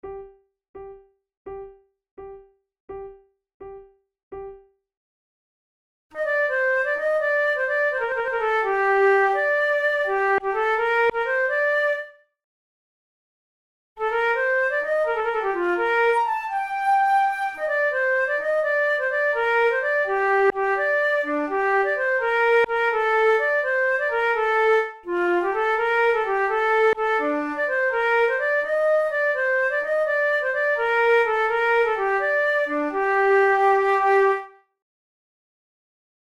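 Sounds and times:
two flutes playing a gigue en rondeau: 6.2 - 12.1, 14.0 - 34.5.

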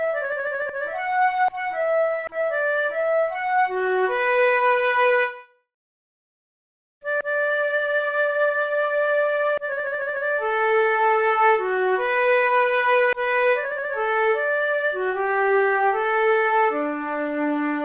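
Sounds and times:
two flutes playing an allemande: 0.0 - 5.5, 7.1 - 17.8.

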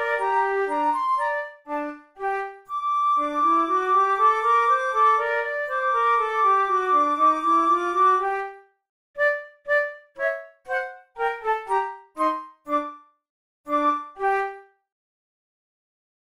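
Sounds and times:
flute method exercise: 0.0 - 8.6, 9.2 - 13.0.

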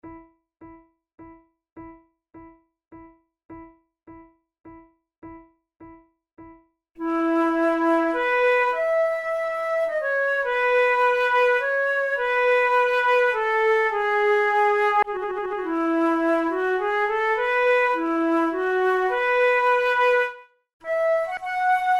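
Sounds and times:
two flutes playing minuets: 7.0 - 21.9.

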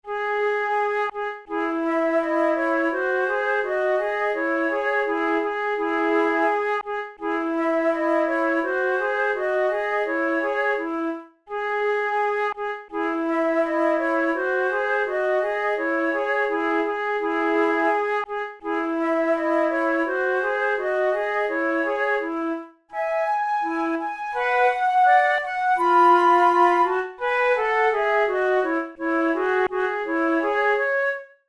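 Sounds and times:
flute method exercise: 0.0 - 31.4.

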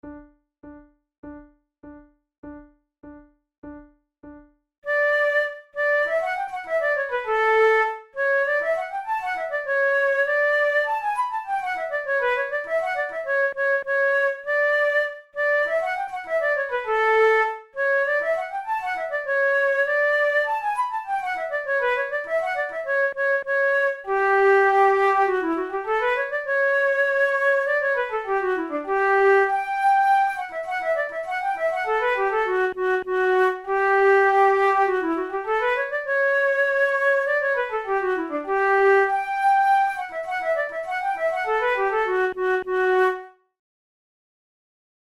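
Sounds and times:
flute duet allegretto: 4.9 - 43.5.

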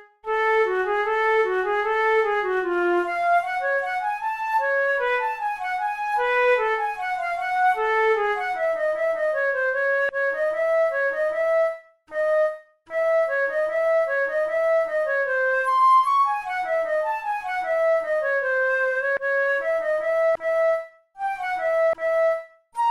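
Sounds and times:
two flutes playing a sonata andante: 0.4 - 22.8.

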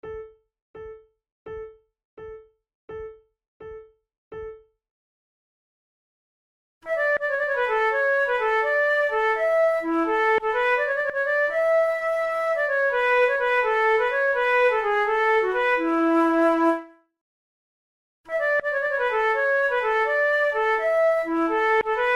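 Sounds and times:
two flutes playing a gigue in the French manner: 6.9 - 16.9, 18.3 - 22.1.

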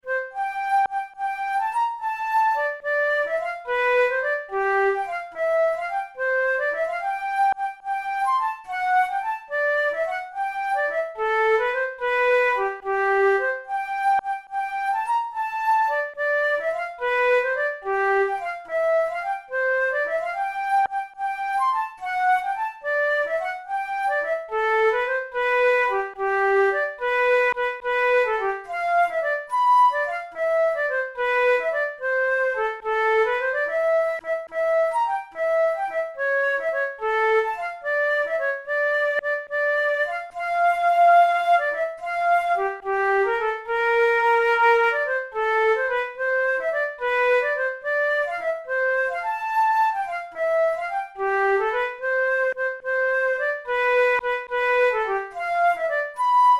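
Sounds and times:
flute playing a forlane: 0.0 - 56.5.

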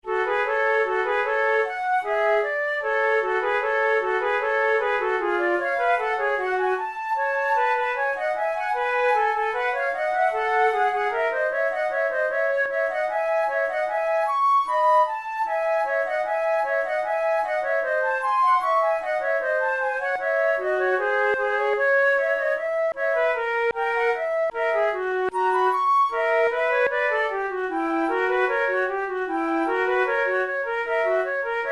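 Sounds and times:
two flutes playing a sonata andante: 0.0 - 31.7.

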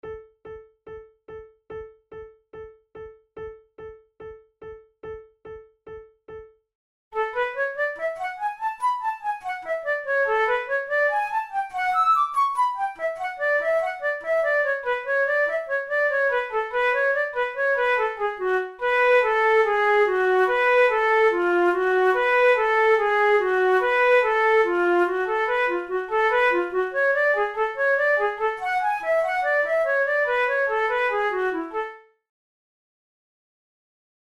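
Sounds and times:
flute: 7.2 - 32.1.

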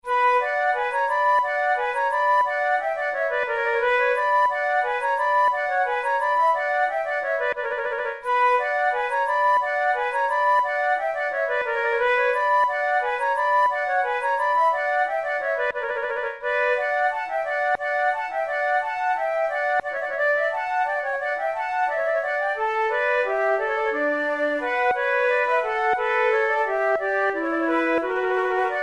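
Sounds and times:
two flutes playing: 0.0 - 28.8.

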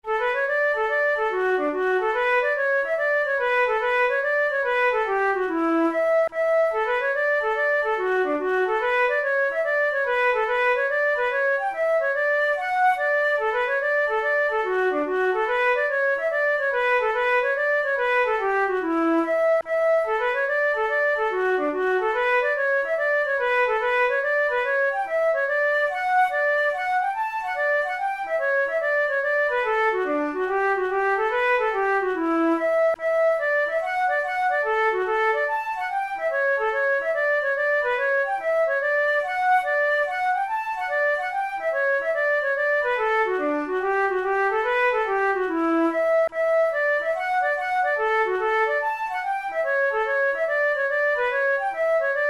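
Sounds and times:
flute playing a hornpipe: 0.0 - 52.2.

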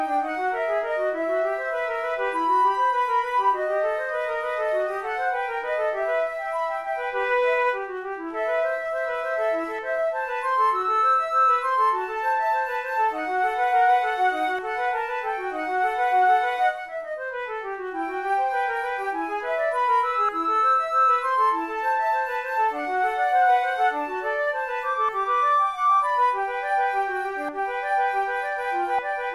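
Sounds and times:
flute duet: 0.0 - 29.3.

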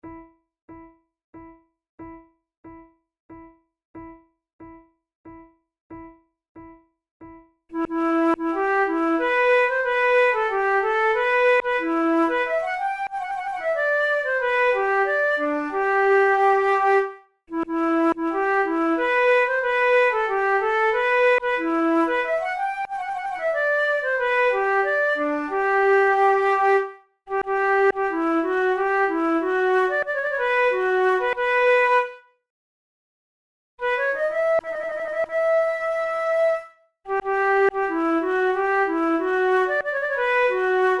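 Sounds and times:
two flutes playing a French courante: 7.7 - 32.2, 33.8 - 40.9.

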